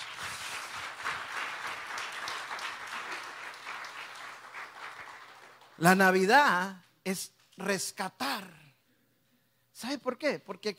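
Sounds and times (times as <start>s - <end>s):
audience applauding: 0.0s - 6.2s
speech: 5.8s - 8.6s, 9.8s - 10.7s.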